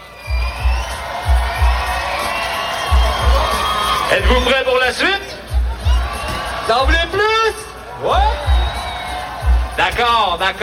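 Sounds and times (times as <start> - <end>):
large festival crowd cheering and shouting: 0.0 - 10.6
deep thumping low bass beats: 0.3 - 2.2, 2.8 - 4.5, 5.4 - 7.3, 8.1 - 10.4
speech: 4.1 - 5.3, 6.7 - 8.5, 9.8 - 10.6.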